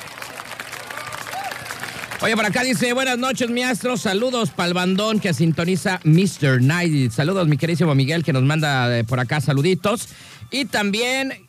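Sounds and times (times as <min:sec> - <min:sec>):
applause: 0:00.0 - 0:07.2
speech: 0:02.2 - 0:11.4.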